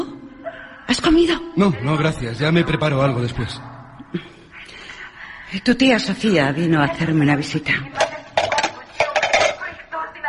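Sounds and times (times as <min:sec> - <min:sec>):
speech: 0:00.9 - 0:04.3, 0:05.5 - 0:08.0
dishes and plates clinking: 0:08.0 - 0:09.8.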